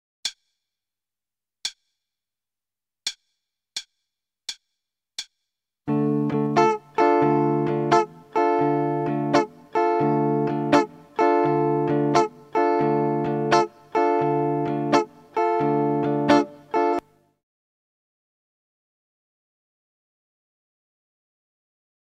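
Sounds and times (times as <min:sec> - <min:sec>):
starter guitar rhythm: 0:05.9 - 0:17.1.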